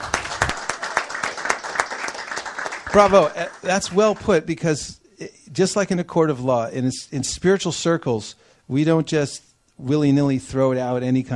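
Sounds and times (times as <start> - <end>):
audience clapping: 0.0 - 4.4
speech: 2.9 - 11.3.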